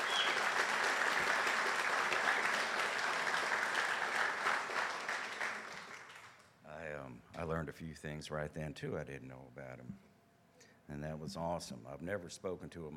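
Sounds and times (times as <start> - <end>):
audience applause: 0.0 - 6.4
speech: 7.6 - 10.1, 10.9 - 12.9.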